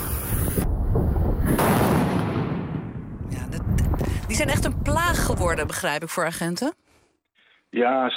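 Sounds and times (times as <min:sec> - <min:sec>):
Cobra heavy firework explosions: 0:00.0 - 0:04.8
speech: 0:04.4 - 0:06.9, 0:07.7 - 0:08.1.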